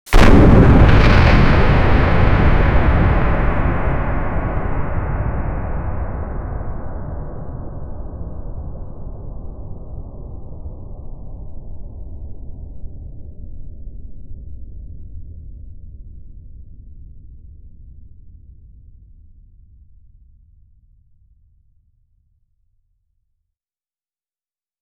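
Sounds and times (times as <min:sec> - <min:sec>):
explosion: 0:00.1 - 0:07.6.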